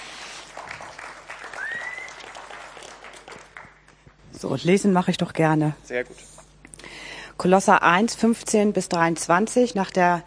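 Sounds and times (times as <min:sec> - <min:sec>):
audience applause: 0:00.0 - 0:04.0
speech: 0:04.4 - 0:06.4, 0:07.4 - 0:10.2.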